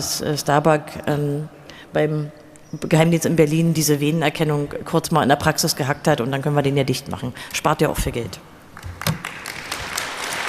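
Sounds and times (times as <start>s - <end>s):
speech: 0.0s - 8.5s
sparse audience applause: 9.0s - 10.4s.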